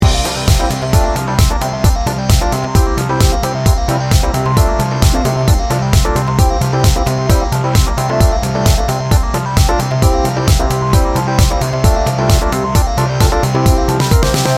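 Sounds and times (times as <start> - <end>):
fist pumper loop: 0.0 - 14.5.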